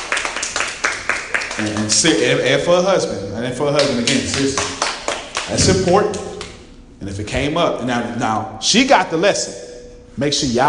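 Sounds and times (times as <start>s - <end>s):
crowd clapping: 0.0s - 2.4s, 3.8s - 6.6s
speech: 1.6s - 4.8s, 5.5s - 6.3s, 7.0s - 10.6s.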